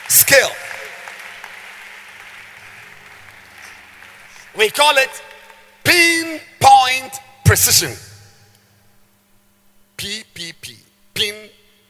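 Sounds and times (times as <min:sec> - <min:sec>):
audience clapping: 0:00.0 - 0:05.8
speech: 0:00.2 - 0:00.6, 0:04.6 - 0:08.1, 0:10.0 - 0:10.8.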